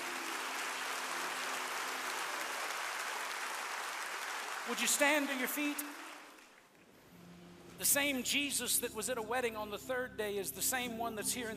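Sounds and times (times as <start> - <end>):
audience hand clapping in praise: 0.0 - 6.8
speech: 4.7 - 6.0, 7.8 - 11.5.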